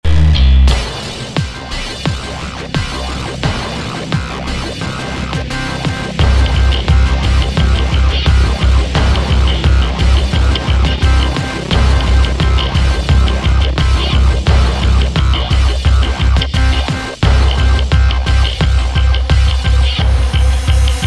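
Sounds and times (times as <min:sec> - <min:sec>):
epic action game soundtrack music: 0:00.1 - 0:21.0.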